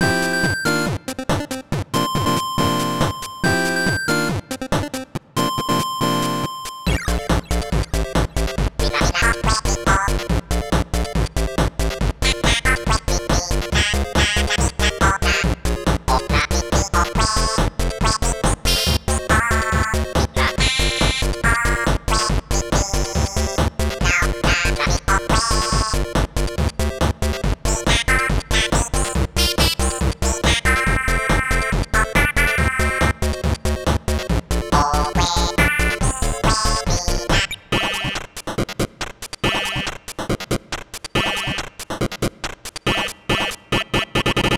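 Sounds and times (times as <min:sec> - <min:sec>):
NES disco remix: 0:00.0 - 0:44.5.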